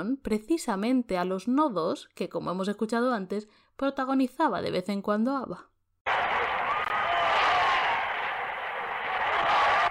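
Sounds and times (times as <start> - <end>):
speech: 0.0 - 5.7
bullring crowd applauding and cheering: 6.1 - 9.9.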